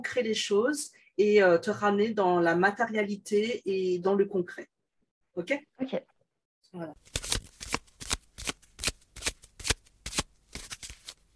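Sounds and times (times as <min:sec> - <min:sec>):
speech: 0:00.0 - 0:04.7, 0:05.4 - 0:06.1, 0:06.7 - 0:07.3
tarot cards being shuffled before a draw: 0:07.0 - 0:11.3.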